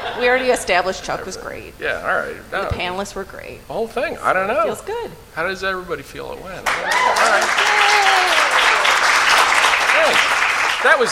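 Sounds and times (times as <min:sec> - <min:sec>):
speech: 0:00.2 - 0:08.0, 0:10.1 - 0:11.1
audience applause: 0:06.6 - 0:11.1
whooping cheers: 0:06.7 - 0:10.3.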